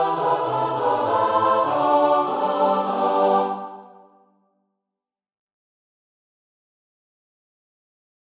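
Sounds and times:
choir singing: 0.0 - 4.4.

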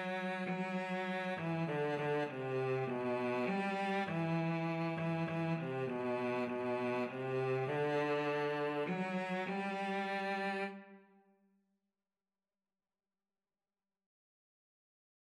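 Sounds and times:
violin and cello duet playing a hymn: 0.0 - 11.0.

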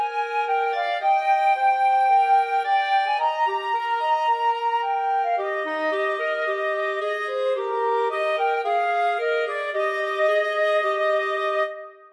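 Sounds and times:
flute and clarinet duet: 0.0 - 12.1.

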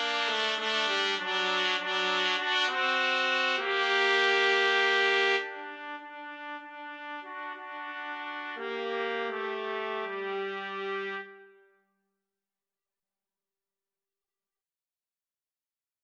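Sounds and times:
trumpet karaoke backing track: 0.0 - 11.5.

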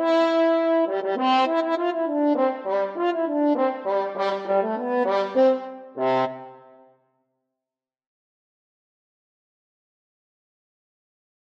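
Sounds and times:
French horn duet: 0.0 - 6.7.

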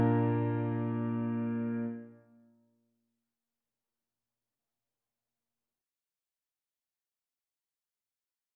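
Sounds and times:
tuba: 0.0 - 2.1.

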